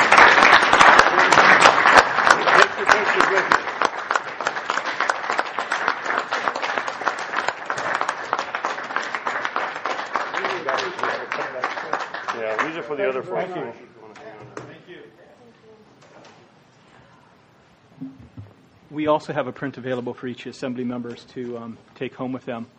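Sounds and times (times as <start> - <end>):
audience applause: 0.0 - 13.2
speech: 19.0 - 22.7.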